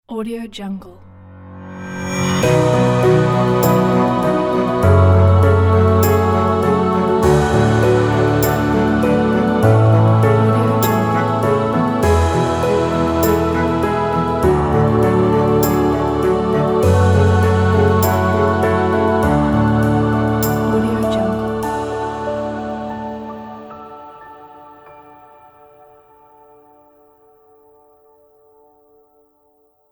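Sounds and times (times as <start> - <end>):
epic cinematic intro music: 1.1 - 24.8.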